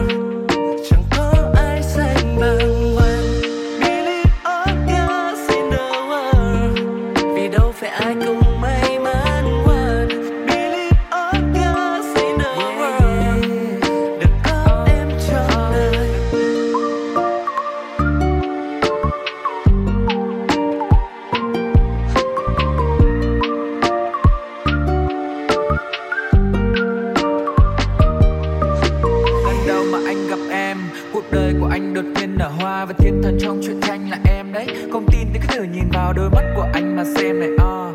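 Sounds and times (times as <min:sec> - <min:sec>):
lo-fi music: 0:00.0 - 0:37.9.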